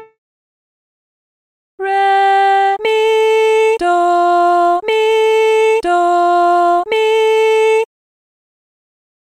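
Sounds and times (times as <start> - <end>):
person singing solfa training exercise: 1.8 - 7.9.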